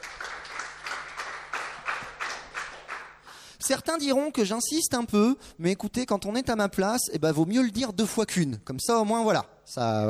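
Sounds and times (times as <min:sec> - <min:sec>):
audience applause: 0:00.0 - 0:03.2
speech: 0:03.7 - 0:10.0.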